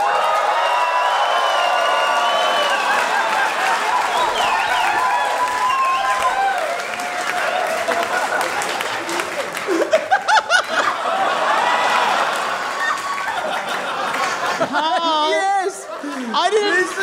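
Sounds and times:
audience applause: 0.0 - 17.0
laughter: 2.2 - 5.1, 7.2 - 17.0.

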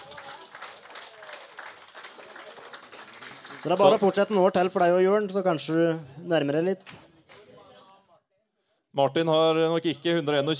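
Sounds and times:
applause: 0.0 - 4.6
speech: 3.6 - 7.0, 9.0 - 10.5.

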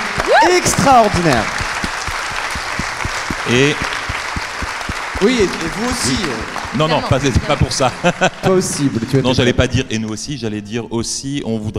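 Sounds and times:
audience applause: 0.0 - 9.1
speech: 0.5 - 1.6, 3.4 - 3.9, 5.2 - 11.7
laughter: 5.2 - 9.6.

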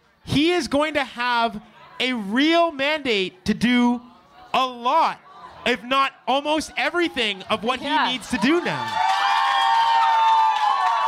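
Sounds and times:
speech: 0.3 - 9.1
crowd cheering in a room: 4.1 - 11.0.

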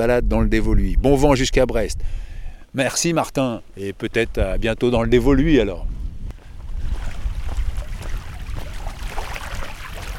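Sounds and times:
speech: 0.0 - 6.0
small waves lapping at the water's edge: 6.4 - 10.1.

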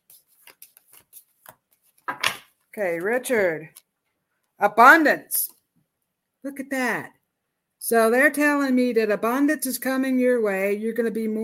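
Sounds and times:
card drawn from a deck during a card reading: 0.0 - 3.1
speech: 2.8 - 3.8, 4.6 - 5.5, 6.4 - 7.2, 7.8 - 11.4.

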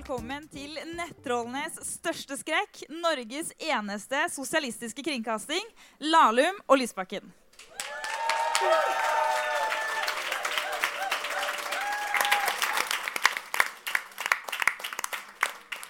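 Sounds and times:
speech: 0.1 - 7.4, 8.6 - 9.2
live studio audience applause at a Norwegian talk show: 7.6 - 15.8.

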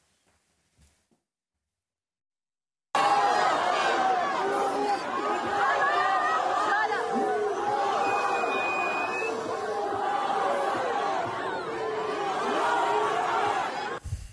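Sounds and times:
crowd chanting slogans at a night rally: 3.0 - 14.0.

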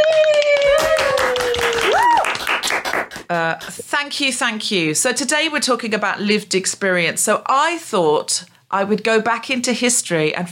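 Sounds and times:
audience applause welcoming a comedian to the microphone: 0.0 - 3.8
speech: 3.3 - 10.5.

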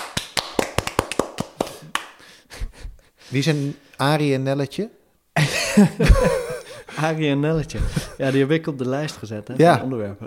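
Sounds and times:
hand claps: 0.0 - 2.2
speech: 3.3 - 6.4, 7.0 - 10.2
laughter: 5.4 - 8.5.

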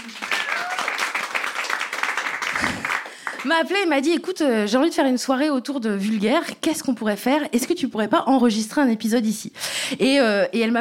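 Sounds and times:
audience applause in a venue during a live recording: 0.0 - 3.5
speech: 3.4 - 10.7.

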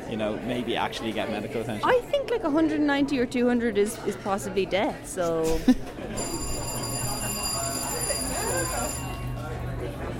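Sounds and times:
speech: 0.1 - 6.4
bell ringing: 6.2 - 9.7.

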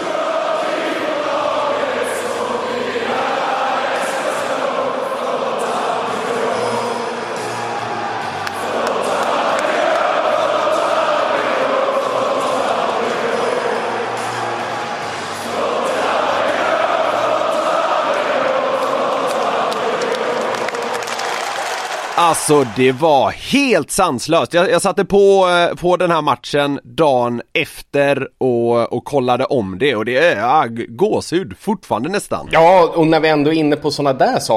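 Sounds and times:
crowd singing anthem: 0.0 - 22.2
speech: 22.3 - 34.5.

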